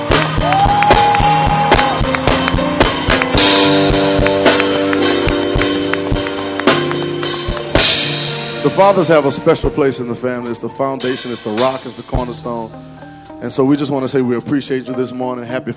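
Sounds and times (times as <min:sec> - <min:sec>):
audience applauding: 0:00.0 - 0:07.8
speech: 0:08.7 - 0:15.7.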